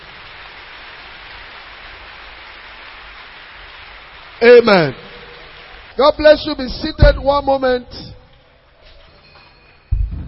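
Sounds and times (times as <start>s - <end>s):
church audience clapping hands: 0.0s - 7.8s
speech: 4.4s - 5.0s, 6.0s - 8.1s.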